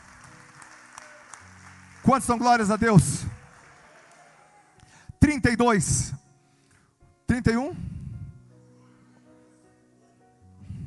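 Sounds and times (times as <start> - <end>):
audience applause: 0.0 - 4.8
speech: 2.0 - 3.2, 5.4 - 6.2, 7.4 - 7.9.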